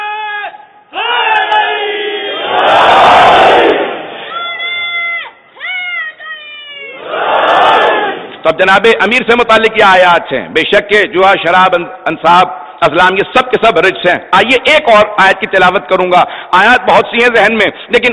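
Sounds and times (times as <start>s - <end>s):
crowd at a religious gathering shouting a slogan: 0.9s - 4.7s, 7.0s - 8.3s
speech: 8.5s - 18.1s.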